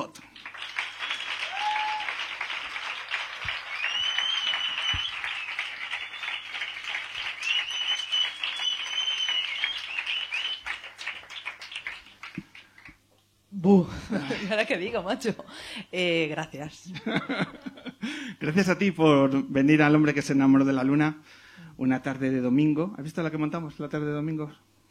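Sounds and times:
audience applause: 0.0s - 13.0s
whistles: 0.6s - 2.2s, 3.6s - 10.9s
speech: 13.7s - 17.6s, 18.4s - 24.7s
laughter: 16.9s - 18.0s.

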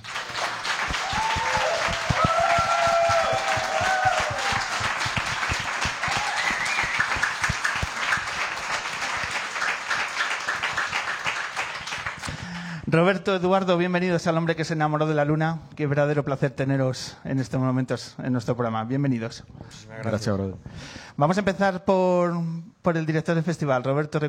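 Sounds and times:
audience applause: 0.0s - 12.8s
speech: 13.0s - 24.2s.

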